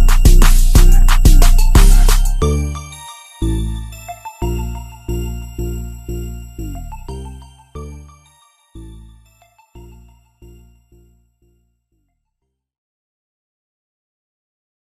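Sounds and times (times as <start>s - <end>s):
instrumental music: 0.0s - 11.4s.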